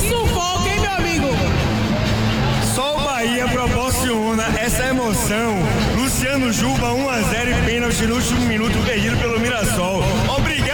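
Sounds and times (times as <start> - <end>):
football fans roaring in a stadium: 0.5 - 7.8
speech: 5.1 - 10.7.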